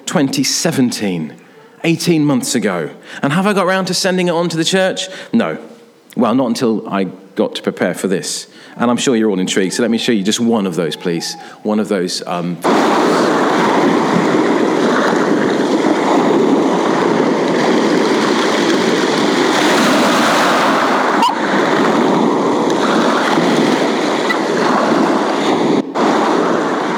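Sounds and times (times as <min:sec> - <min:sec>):
speech: 0:00.1 - 0:13.5
sea waves breaking on a shingle beach: 0:12.3 - 0:26.9.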